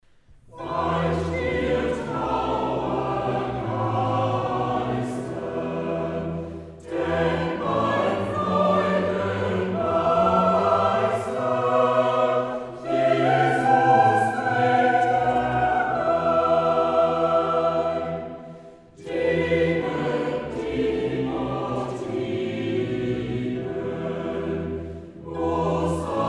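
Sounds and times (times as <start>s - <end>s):
live SATB choir singing: 0.5s - 26.2s.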